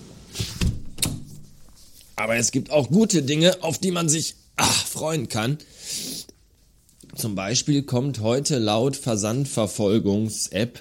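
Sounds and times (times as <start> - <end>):
window being shut: 0.3 - 1.5
speech: 2.2 - 6.2, 7.2 - 10.7.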